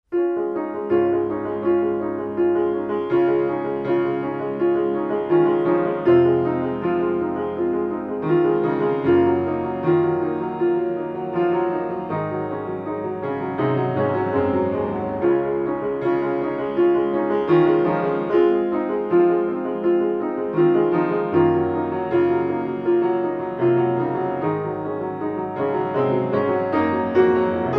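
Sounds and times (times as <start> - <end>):
light piano music: 0.0 - 27.7.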